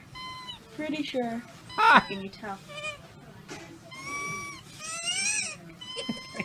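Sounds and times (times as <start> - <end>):
squeaky breathing after inhaling toy squeaker: 0.0 - 0.7, 1.6 - 3.0, 3.9 - 6.4
murmur: 0.0 - 6.4
speech: 0.8 - 2.9.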